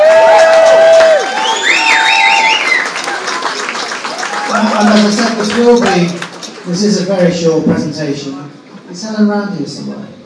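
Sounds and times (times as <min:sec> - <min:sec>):
wavering whoops: 0:00.0 - 0:03.2
audience cheering: 0:00.0 - 0:07.1
crowd clapping: 0:00.0 - 0:07.4
shrill whistles: 0:01.2 - 0:03.0
speech: 0:04.8 - 0:10.2.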